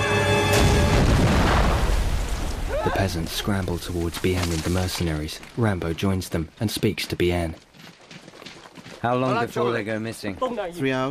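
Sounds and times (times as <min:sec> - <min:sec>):
grenade explosion in a film battle scene in a paddy field: 0:00.4 - 0:04.2
speech: 0:02.9 - 0:07.7, 0:09.0 - 0:11.0.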